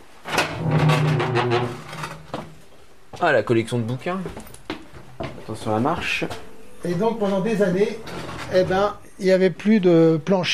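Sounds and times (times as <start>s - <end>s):
door closing: 0.3s - 2.0s
speech: 3.2s - 4.5s, 5.5s - 10.5s.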